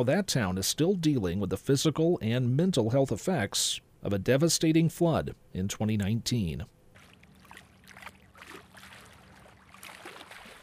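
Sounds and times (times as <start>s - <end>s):
speech: 0.0s - 6.8s
river waves lapping on the bank: 6.9s - 10.6s.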